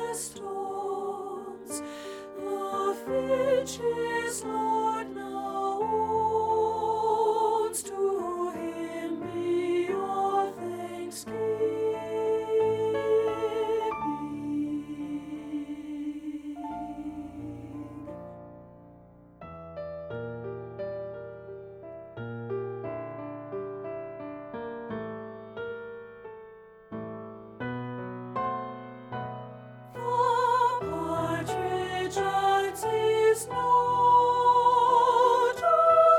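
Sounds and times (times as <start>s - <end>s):
treble soprano voice singing: 0.0s - 18.4s, 30.0s - 36.1s.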